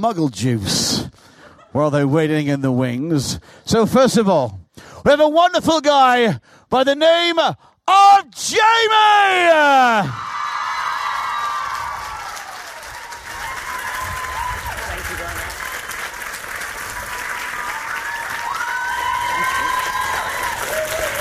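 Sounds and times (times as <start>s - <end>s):
speech: 0.0s - 10.3s
audience applause: 10.2s - 21.1s.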